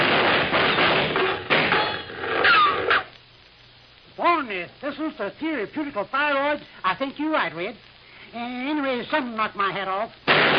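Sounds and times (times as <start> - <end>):
gunshots: 0.0 - 3.0, 10.3 - 10.5
speech: 5.0 - 10.5.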